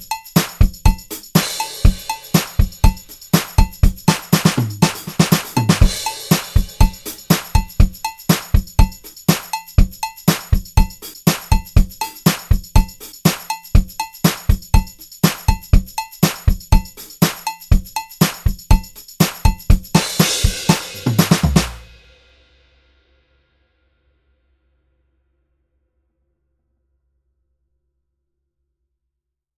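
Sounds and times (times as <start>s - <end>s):
vintage disco drum kit: 0.0s - 22.1s.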